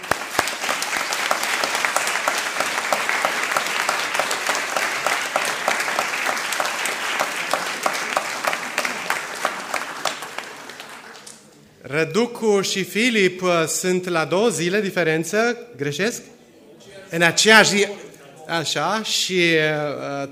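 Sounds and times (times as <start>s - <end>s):
audience applause: 0.0s - 11.6s
speech: 12.0s - 16.3s, 17.1s - 20.3s.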